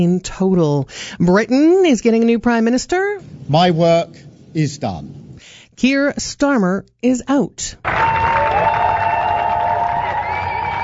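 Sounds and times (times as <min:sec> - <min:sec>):
speech: 0:00.0 - 0:05.2, 0:05.8 - 0:08.2
supporters cheering: 0:07.8 - 0:10.8
high whistles and shouts: 0:08.1 - 0:10.8.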